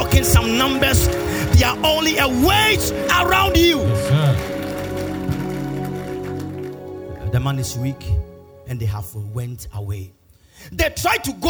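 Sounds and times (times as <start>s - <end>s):
audience clapping: 0.0s - 7.8s
sustained droning musical tone: 0.0s - 8.8s
speech: 0.2s - 4.5s, 7.3s - 11.4s.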